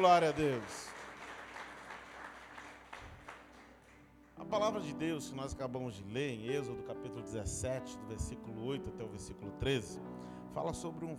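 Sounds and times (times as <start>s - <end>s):
speech: 0.0s - 0.9s, 4.4s - 11.1s
audience applauding: 0.0s - 4.8s.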